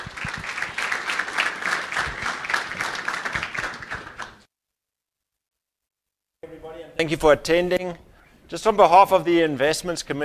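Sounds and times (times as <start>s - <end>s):
audience applause: 0.0s - 4.4s
speech: 6.5s - 10.2s.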